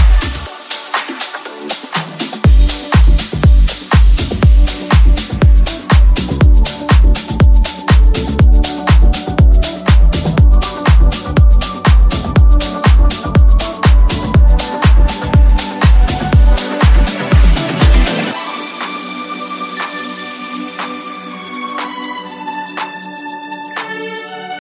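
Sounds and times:
DJ ringtone: 2.5s - 21.0s.

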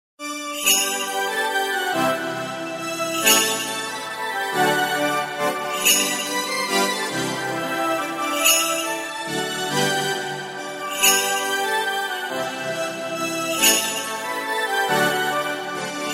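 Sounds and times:
Christmas ringtone: 0.6s - 4.1s, 4.9s - 9.0s, 9.6s - 16.1s.

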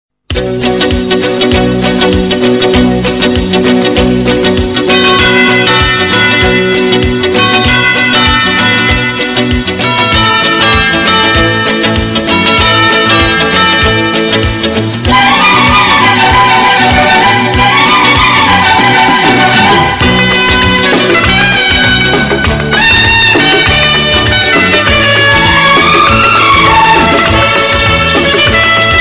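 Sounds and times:
Bollywood Indian music ringtone: 1.2s - 29.0s.

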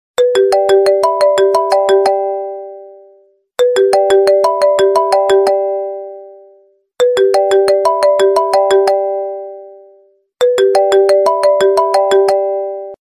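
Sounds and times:
Apple phone ringtone: 0.2s - 13.0s.

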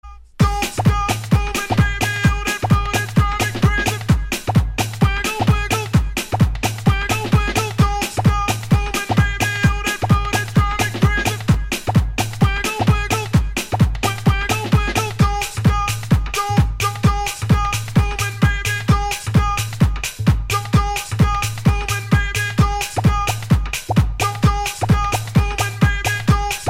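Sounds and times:
English DJ mix ringtone: 0.1s - 26.6s.

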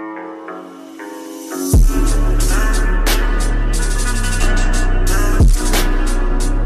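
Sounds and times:
English viral trending remix ringtone: 0.6s - 6.6s.

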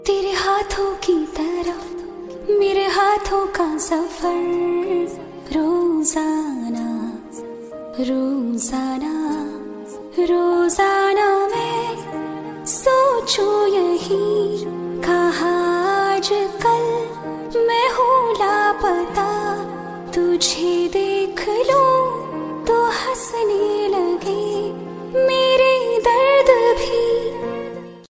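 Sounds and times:
female version Bollywood love ringtone: 0.0s - 27.7s.

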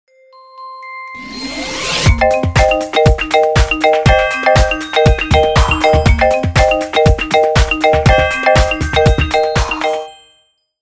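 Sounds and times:
Galaxy ringtone: 0.1s - 10.7s.

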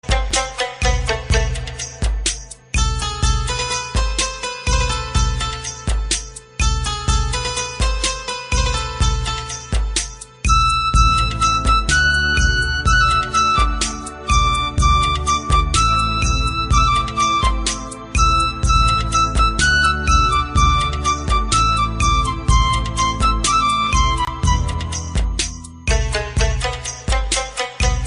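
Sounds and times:
instrumental Bollywood music: 0.0s - 28.0s.

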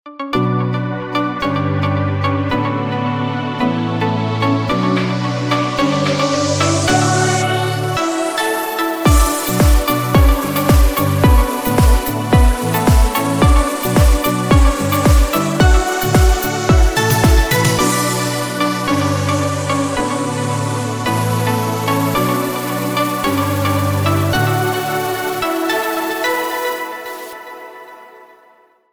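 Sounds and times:
trance ringtone: 1.4s - 28.3s.

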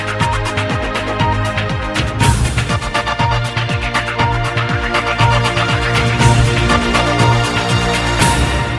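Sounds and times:
countdown ringtone: 0.2s - 1.6s, 2.2s - 8.7s.

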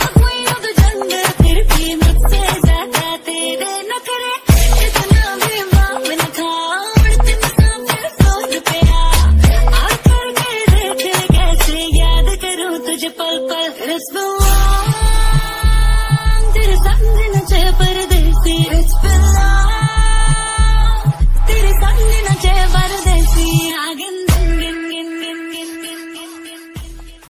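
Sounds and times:
woman singing Bollywood love ringtone: 0.0s - 27.2s.

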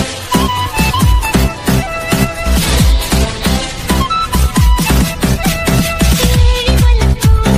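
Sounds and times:
Malayalam music ringtone: 0.2s - 7.4s.

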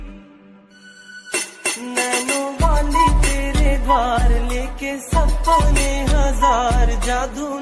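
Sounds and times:
sweet Bollywood ringtone: 0.7s - 7.3s.

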